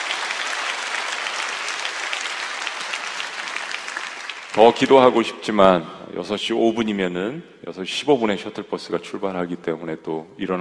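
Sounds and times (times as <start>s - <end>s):
audience applauding: 0.0s - 5.2s
speech: 4.6s - 10.6s.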